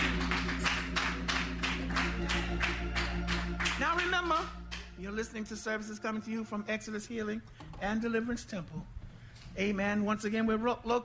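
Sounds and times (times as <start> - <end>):
audience hand clapping: 0.0 - 5.0
speech: 4.2 - 9.0, 9.6 - 11.0.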